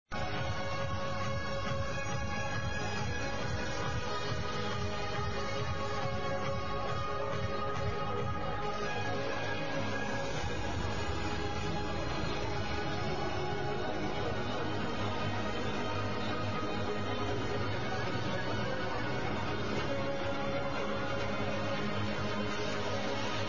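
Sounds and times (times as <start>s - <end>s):
trance music: 0.1s - 23.4s.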